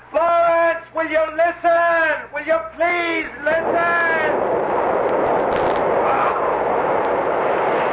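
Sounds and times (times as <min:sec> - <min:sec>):
speech: 0:01.1 - 0:04.6
gasoline fumes exploding after a match is struck in a radio drama: 0:03.5 - 0:07.9.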